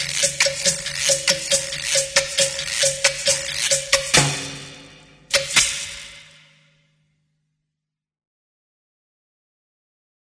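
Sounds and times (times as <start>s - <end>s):
percussion: 0.0s - 7.0s.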